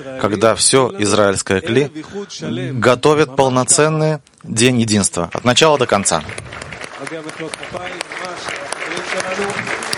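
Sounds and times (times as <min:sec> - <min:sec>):
speech: 0:00.0 - 0:08.2
audience applause: 0:05.5 - 0:09.9.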